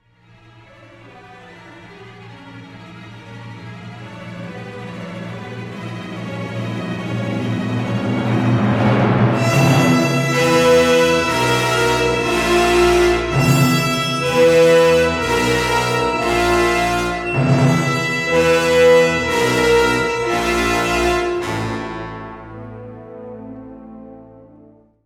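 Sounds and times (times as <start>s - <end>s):
film music: 0.3s - 25.0s.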